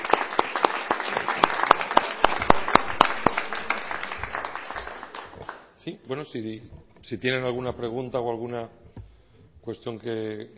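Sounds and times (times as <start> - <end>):
audience applause: 0.0 - 5.7
speech: 5.8 - 8.8, 9.6 - 10.5.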